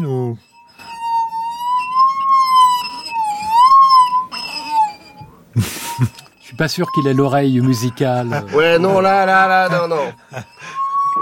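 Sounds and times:
singing glass ringing tone gliding in pitch: 0.0 - 11.1
speech: 5.6 - 10.5.

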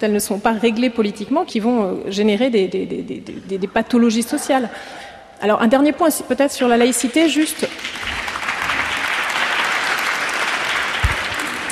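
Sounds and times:
speech: 0.0 - 7.8
audience applause: 7.7 - 11.6.

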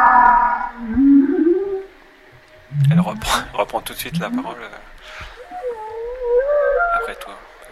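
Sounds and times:
whale vocalizing underwater, recorded by a hydrophone: 0.0 - 2.1, 2.7 - 3.5, 4.1 - 7.5
speech: 3.7 - 5.3.

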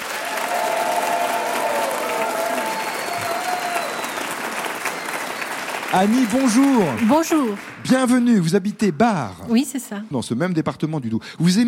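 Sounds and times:
audience applause: 0.0 - 8.6
speech: 5.9 - 11.6.

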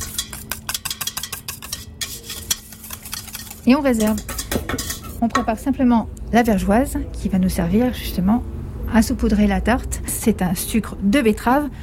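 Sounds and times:
utensil stirring egg yolk, melted butter and crème fraîche in a bowl: 0.0 - 5.3
speech: 3.6 - 11.8.

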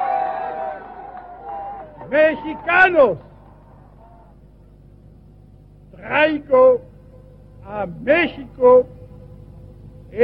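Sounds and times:
crowd applauding: 0.0 - 4.3
speech: 2.1 - 3.3, 6.1 - 6.9, 7.7 - 9.0.

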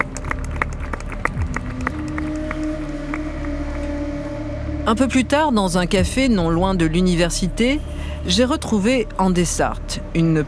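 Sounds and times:
teachers and students applauding at protest: 0.0 - 4.5
speech: 4.9 - 10.4.

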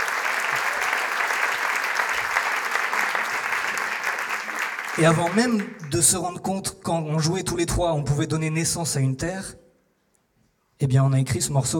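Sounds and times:
audience applause: 0.0 - 6.1
speech: 5.0 - 9.6, 10.8 - 11.7.

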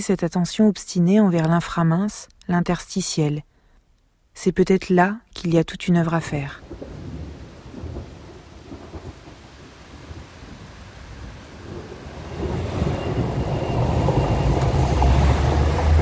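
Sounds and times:
speech: 0.0 - 3.5, 4.4 - 6.9
strong wind in a thunderstorm: 6.6 - 16.0.

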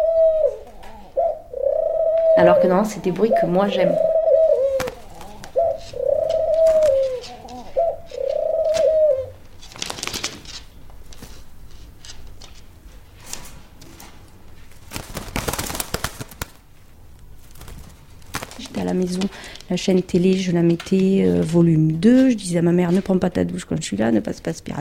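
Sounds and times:
female pigeon cooing: 0.0 - 9.4
speech: 2.4 - 4.1, 19.7 - 24.7
rustling and scraping: 4.8 - 15.5, 16.8 - 23.3.

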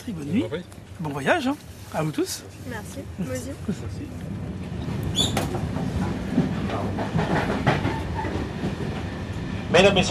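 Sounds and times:
speech: 0.0 - 5.8, 9.7 - 10.0
night train rumbling on rails: 2.0 - 10.0.

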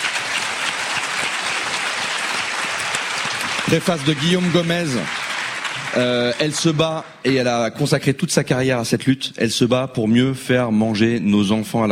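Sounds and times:
crowd applause: 0.0 - 7.6
speech: 3.7 - 5.2, 6.0 - 11.9.

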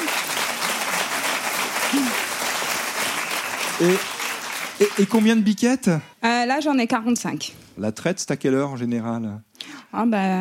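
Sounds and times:
applause: 0.0 - 5.7
speech: 3.8 - 4.2, 4.8 - 10.3.

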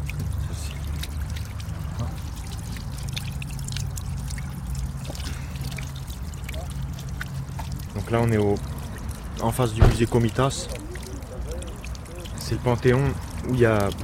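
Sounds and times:
mountain water from Garni running from a street drinking fountain: 0.0 - 14.0
speech: 8.0 - 8.8, 9.4 - 10.8, 12.5 - 14.0.

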